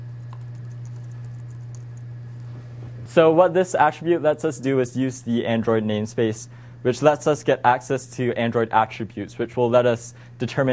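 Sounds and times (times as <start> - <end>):
steady low electrical hum: 0.0 - 10.7
typing on a computer keyboard: 0.3 - 2.0
speech: 3.1 - 10.7.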